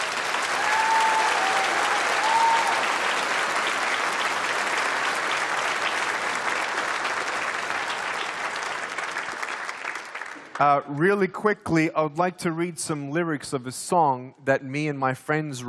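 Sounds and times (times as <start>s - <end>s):
audience applause: 0.0s - 10.8s
speech: 10.6s - 15.6s.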